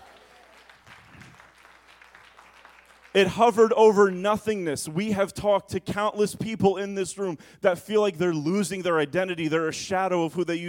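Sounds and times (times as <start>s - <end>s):
audience clapping: 0.0s - 3.6s
speech: 3.1s - 10.6s.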